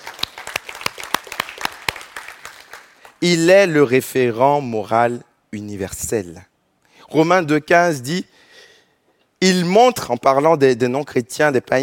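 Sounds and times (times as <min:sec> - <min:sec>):
audience clapping: 0:00.0 - 0:03.2
speech: 0:03.2 - 0:06.5, 0:07.1 - 0:08.4, 0:09.4 - 0:11.8.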